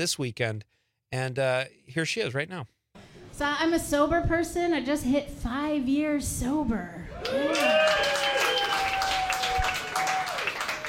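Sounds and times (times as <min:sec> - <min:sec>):
speech: 0:00.0 - 0:02.8, 0:03.4 - 0:08.2
audience cheers and whoops: 0:07.1 - 0:10.8
audience applause: 0:07.2 - 0:10.8.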